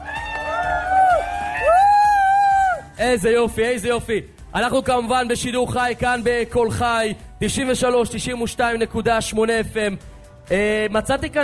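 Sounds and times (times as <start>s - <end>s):
audience applause: 0.0s - 2.8s
speech: 3.0s - 11.4s.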